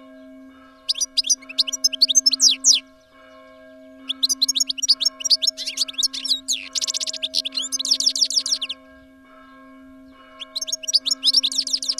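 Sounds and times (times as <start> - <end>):
European goldfinch singing: 0.9 - 2.8, 4.1 - 8.8, 10.4 - 11.9.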